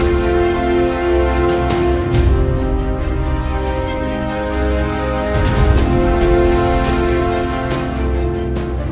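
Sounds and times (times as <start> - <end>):
intense main game music: 0.0 - 8.9.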